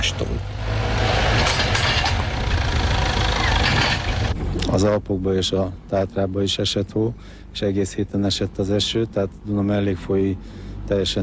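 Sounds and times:
heavy excavator engine working on a levee: 0.0s - 4.7s
speech: 4.7s - 11.2s.

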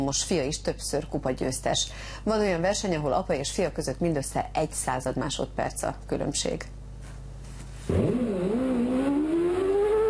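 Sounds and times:
speech: 0.0s - 6.8s, 7.9s - 8.2s
Trabant car engine revving in a slalom race in Zagreb: 7.9s - 10.0s.

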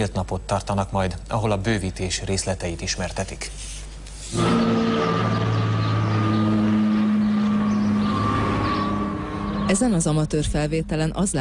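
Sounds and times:
speech: 0.0s - 5.4s, 9.7s - 11.4s
airplane flying over the town of Szigethalom: 4.3s - 10.3s.

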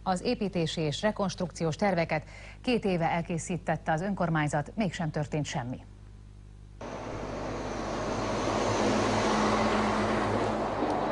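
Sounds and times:
speech: 0.0s - 5.9s
heavy trucks driving through a village: 6.8s - 11.1s.

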